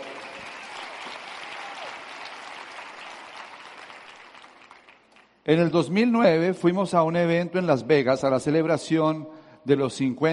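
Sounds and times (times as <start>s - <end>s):
audience applause: 0.0s - 5.2s
speech: 5.5s - 10.3s.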